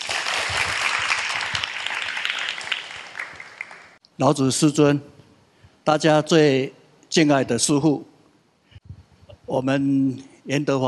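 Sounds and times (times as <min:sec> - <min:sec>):
audience applause: 0:00.0 - 0:04.0
speech: 0:04.2 - 0:05.2, 0:05.8 - 0:08.1, 0:09.5 - 0:10.8.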